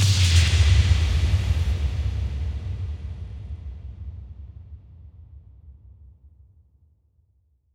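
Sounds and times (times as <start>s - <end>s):
bass drum kick with reverb: 0.0s - 6.1s.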